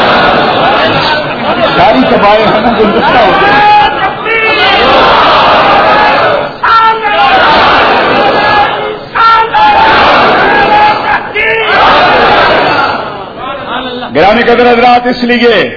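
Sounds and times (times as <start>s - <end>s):
large crowd chanting slogans in unison during a speech: 0.0s - 13.4s
speech: 2.2s - 3.4s, 14.2s - 15.7s.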